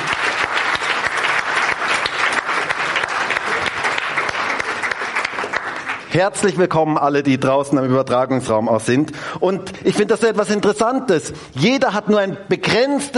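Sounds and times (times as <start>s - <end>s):
audience applause: 0.0s - 6.2s
speech: 6.1s - 13.1s.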